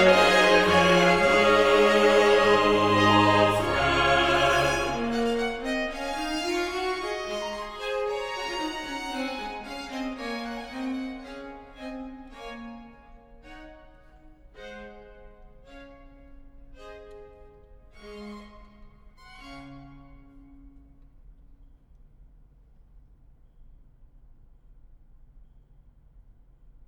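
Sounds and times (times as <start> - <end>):
chorus singing: 0.0 - 11.0.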